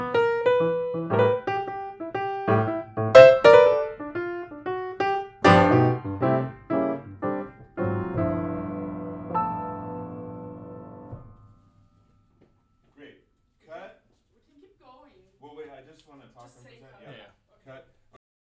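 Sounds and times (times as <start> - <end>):
piano: 0.0 - 12.8.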